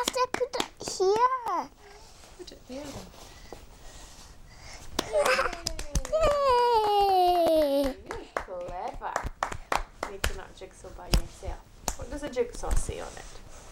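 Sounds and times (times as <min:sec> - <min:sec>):
child clapping hands: 0:00.0 - 0:01.6, 0:05.0 - 0:10.4
speech: 0:00.8 - 0:01.8, 0:02.4 - 0:03.3, 0:05.0 - 0:06.4, 0:10.1 - 0:13.4.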